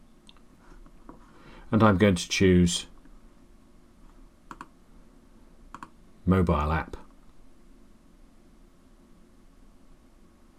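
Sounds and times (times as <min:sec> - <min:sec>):
soft steady hiss: 0:00.0 - 0:10.5
speech: 0:01.7 - 0:02.9, 0:06.3 - 0:07.0
mouse clicks on a setup button: 0:04.5 - 0:04.7, 0:05.7 - 0:06.0.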